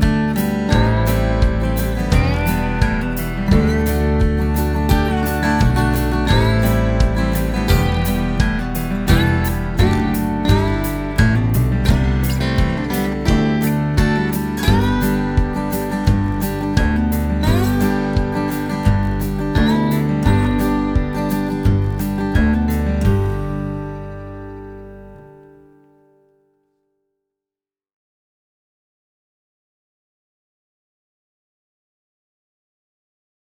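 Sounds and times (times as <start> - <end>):
modern country music: 0.0 - 25.5.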